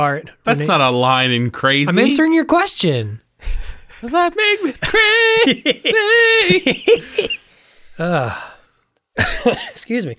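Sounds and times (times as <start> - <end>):
speech: 0.0 - 7.4, 8.0 - 8.5, 9.2 - 10.1
laughter: 3.4 - 7.5
person coughing into the microphone: 9.2 - 9.9.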